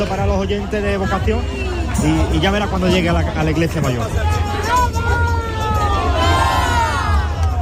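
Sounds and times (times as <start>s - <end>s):
speech: 0.0s - 4.4s
steady low rumble of general hubbub: 0.0s - 7.6s
crowd chanting at a procession: 4.2s - 7.6s.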